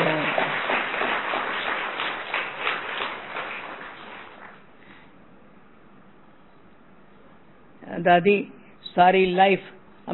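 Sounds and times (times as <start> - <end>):
audience clapping: 0.0 - 4.7
speech: 8.0 - 10.1.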